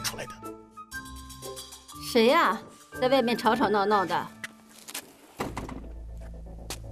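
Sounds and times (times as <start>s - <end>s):
speech: 2.2s - 4.4s
hospital ward door opening from inside: 5.4s - 5.9s.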